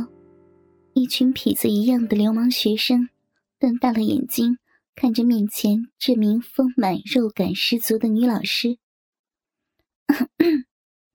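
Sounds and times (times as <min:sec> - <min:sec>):
speech: 0:01.0 - 0:08.8, 0:10.1 - 0:10.7
woman coughing lightly: 0:10.1 - 0:10.7.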